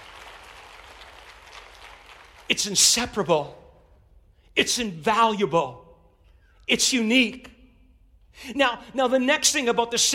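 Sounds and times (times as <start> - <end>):
crowd applause: 0.0 - 2.5
speech: 2.5 - 3.6, 4.6 - 5.8, 6.7 - 7.6, 8.4 - 10.1.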